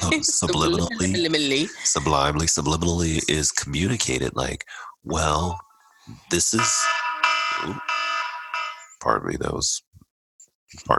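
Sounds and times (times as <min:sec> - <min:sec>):
laughter: 0:00.0 - 0:03.5
speech: 0:00.1 - 0:07.0, 0:07.6 - 0:08.1, 0:09.0 - 0:09.9, 0:10.7 - 0:10.9
two alarms going off at the same time: 0:06.6 - 0:09.0.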